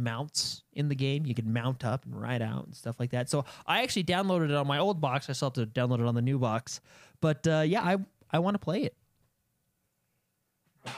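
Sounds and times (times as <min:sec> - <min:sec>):
speech: 0:00.0 - 0:09.0
intake of breath: 0:06.8 - 0:07.2.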